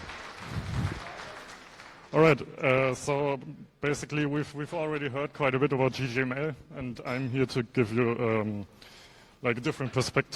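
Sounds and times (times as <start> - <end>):
audience applause: 0.0 - 2.3
speech: 2.1 - 10.3.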